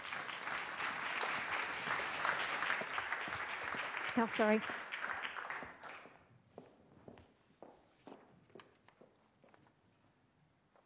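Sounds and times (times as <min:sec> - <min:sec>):
audience clapping: 0:00.0 - 0:06.3
speech: 0:04.2 - 0:04.9.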